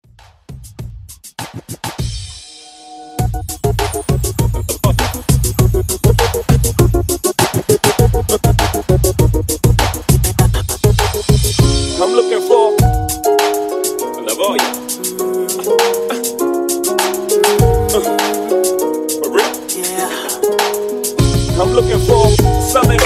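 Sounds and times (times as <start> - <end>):
intro and outro music: 2.1 - 23.0.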